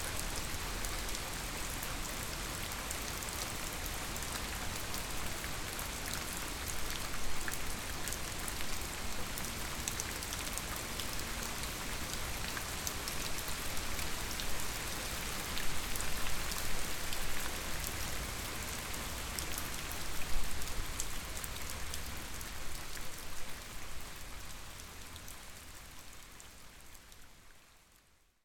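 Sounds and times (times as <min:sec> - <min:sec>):
rain in Sergiyev Posad: 0:00.0 - 0:28.4.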